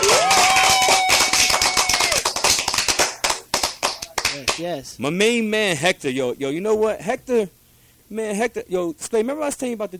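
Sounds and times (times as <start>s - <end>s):
hand clapping: 0.0s - 4.7s
speech: 4.6s - 9.9s.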